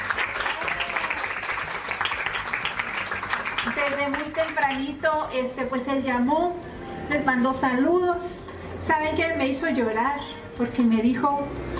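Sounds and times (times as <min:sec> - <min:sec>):
audience applause: 0:00.0 - 0:04.7
speech: 0:03.7 - 0:11.7.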